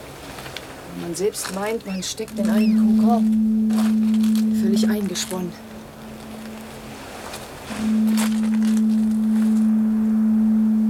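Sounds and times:
speech: 1.0 - 5.7
foghorn: 2.3 - 10.8.

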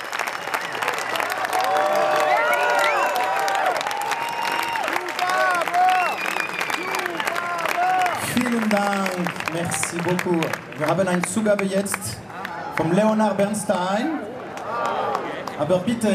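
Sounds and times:
long applause from large crowd at concert end: 0.0 - 13.6, 14.2 - 16.1
whoops and cheering voices: 0.5 - 8.2
speech: 9.6 - 12.2, 12.8 - 14.9, 15.6 - 16.1.

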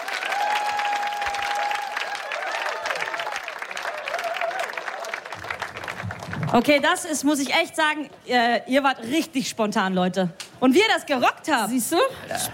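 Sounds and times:
audience applause: 0.0 - 7.1
speech: 6.6 - 12.5.

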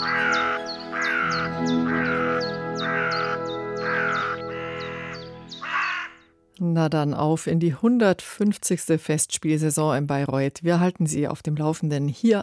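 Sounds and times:
ravens cawing: 0.0 - 6.3
speech: 6.6 - 12.4.

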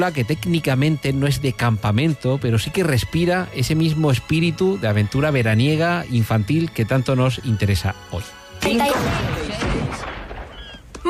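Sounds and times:
speech: 0.0 - 9.7
gunshots in a film scene: 8.6 - 11.0.

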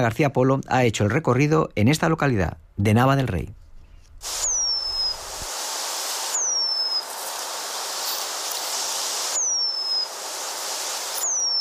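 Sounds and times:
speech: 0.0 - 3.6, 4.2 - 4.5
Eurasian penduline tit song: 4.4 - 5.2, 6.3 - 7.2, 9.2 - 10.2, 11.0 - 11.5.

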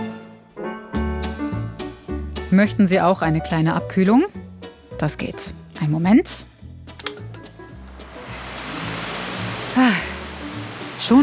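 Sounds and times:
speech: 2.5 - 4.4, 5.0 - 6.5, 11.1 - 11.2
electric fan blowing air: 7.5 - 11.2.

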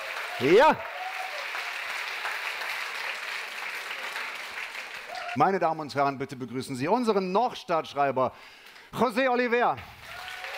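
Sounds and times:
crowd clapping: 0.0 - 5.5, 9.8 - 10.5
speech: 0.4 - 0.9, 5.4 - 10.0.

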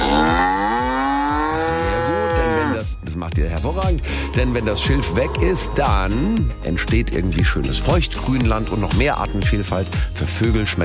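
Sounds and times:
cow mooing while grazing reed-overgrown wetland in a nature reserve: 0.0 - 2.9, 4.2 - 6.5
speech: 3.4 - 10.8.

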